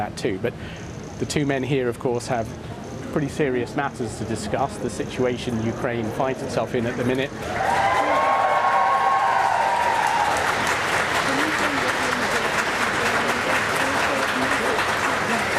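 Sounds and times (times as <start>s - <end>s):
speech: 0.0s - 8.0s
crowd cheering and applauding outside Foreign Office: 7.4s - 15.5s.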